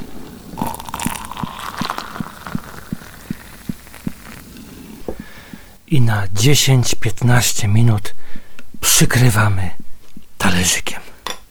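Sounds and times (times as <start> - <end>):
boiling water pouring over coffee into a cup: 0.0 - 5.8
speech: 5.9 - 8.2, 8.8 - 9.8, 10.4 - 11.0.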